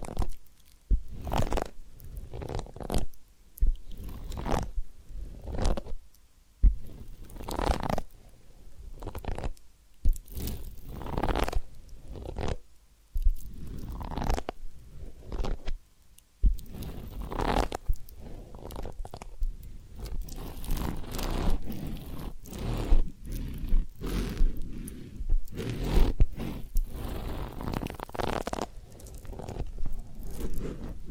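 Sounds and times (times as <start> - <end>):
ear cleaning and massage scratching: 0.0 - 6.0, 6.6 - 8.1, 8.8 - 12.6, 13.2 - 15.8, 16.4 - 31.0
soft low thumps: 6.6 - 7.0, 16.4 - 16.9, 19.4 - 27.8.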